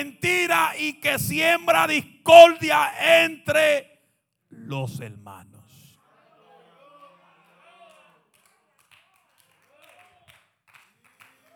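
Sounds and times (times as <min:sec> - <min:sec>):
speech: 0:00.0 - 0:03.9, 0:04.5 - 0:05.5
lone person clapping: 0:08.4 - 0:11.5.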